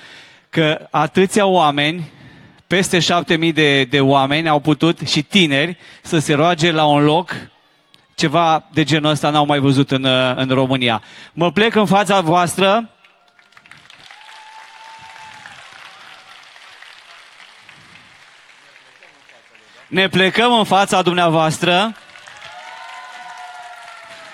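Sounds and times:
speech: 0:00.5 - 0:07.5, 0:08.2 - 0:13.0, 0:19.9 - 0:22.0
audience applauding: 0:13.0 - 0:24.3.

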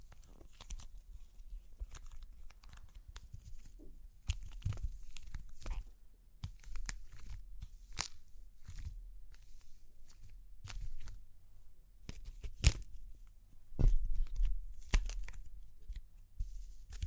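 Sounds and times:
crunchy clay being cracked and broken apart: 0:00.0 - 0:09.0, 0:12.0 - 0:13.0, 0:14.0 - 0:16.2.

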